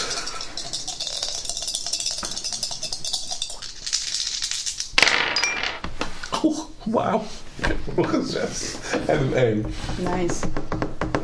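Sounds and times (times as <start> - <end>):
dice rattling: 3.6 - 5.8
speech: 6.4 - 10.8.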